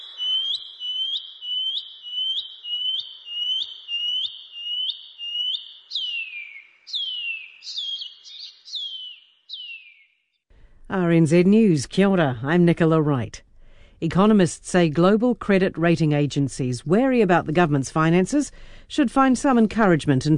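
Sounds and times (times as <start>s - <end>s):
shining cuckoo pipi wharaurua call: 0.0s - 10.0s
speech: 10.9s - 13.4s, 14.0s - 20.3s.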